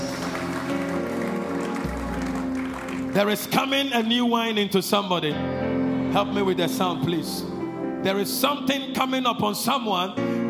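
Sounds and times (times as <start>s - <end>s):
audience clapping: 0.0s - 3.9s
speech: 3.2s - 10.4s.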